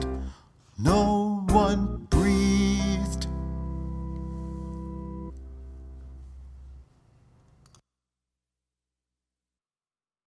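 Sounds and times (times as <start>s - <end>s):
bouncy swing music: 0.0s - 5.4s.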